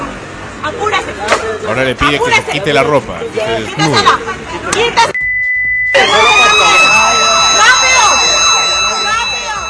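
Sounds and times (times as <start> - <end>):
speech: 0.6 - 5.2
neighbourhood alarm siren: 5.9 - 9.6.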